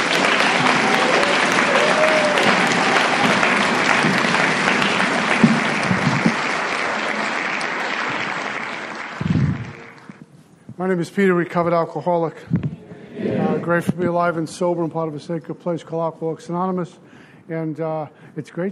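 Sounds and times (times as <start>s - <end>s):
audience applause: 0.0s - 10.2s
speech: 10.8s - 12.6s, 13.6s - 18.7s.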